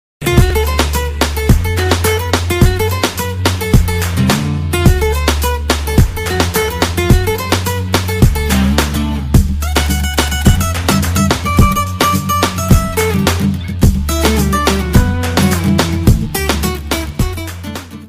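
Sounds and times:
guitar: 0.2s - 18.0s.

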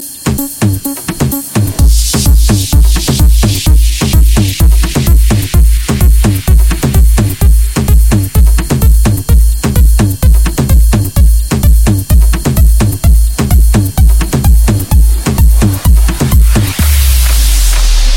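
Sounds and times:
house club music: 0.0s - 18.1s.

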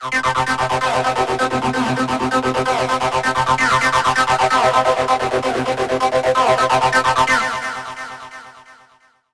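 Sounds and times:
dance arpeggio: 0.2s - 7.6s.

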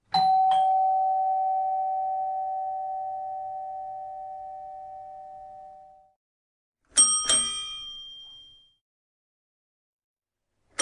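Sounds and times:
doorbell: 0.1s - 6.1s, 7.0s - 8.8s.

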